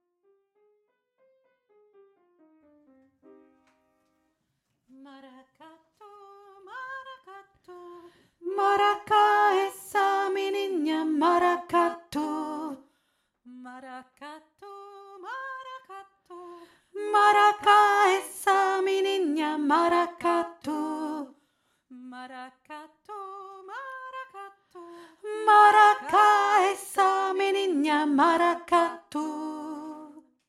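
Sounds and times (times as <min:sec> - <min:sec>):
middle voice singing: 0:05.2 - 0:12.8, 0:14.7 - 0:21.3, 0:22.0 - 0:30.2.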